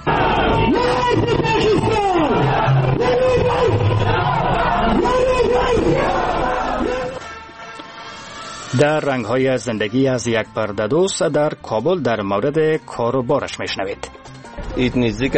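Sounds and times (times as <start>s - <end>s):
protest crowd chanting and shouting: 0.0s - 7.4s
speech: 8.7s - 15.3s.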